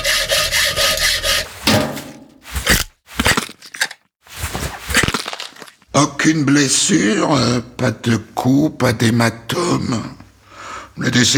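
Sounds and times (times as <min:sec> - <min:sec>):
saw cutting open a chest cavity: 0:00.0 - 0:03.6
cracking and crunching bursts: 0:01.2 - 0:06.0
speech: 0:06.0 - 0:10.2, 0:11.0 - 0:11.3.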